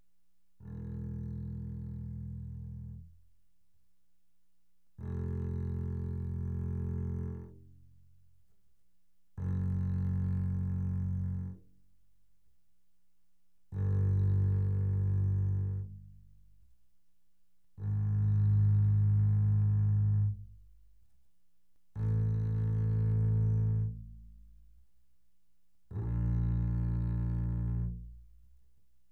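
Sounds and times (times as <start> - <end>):
double bass bowed arco mezzo forte: 0.6 - 3.2, 5.0 - 7.8, 9.4 - 11.6, 13.7 - 16.6, 17.8 - 20.9, 22.0 - 24.6, 25.9 - 28.3.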